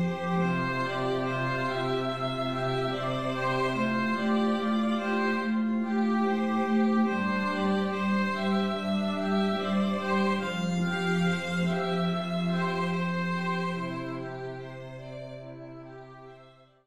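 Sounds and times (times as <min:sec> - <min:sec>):
string trio playing: 0:00.0 - 0:16.4.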